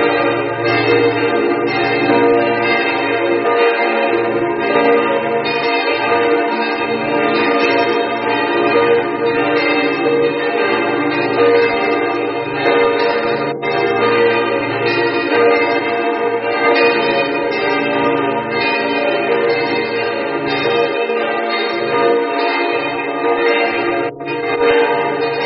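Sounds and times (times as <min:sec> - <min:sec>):
church bells: 0:00.0 - 0:25.4.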